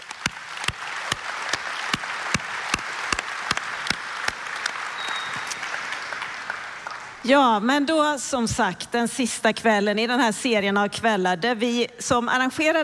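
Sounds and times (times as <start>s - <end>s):
audience applause: 0.0s - 7.2s
speech: 7.2s - 12.8s.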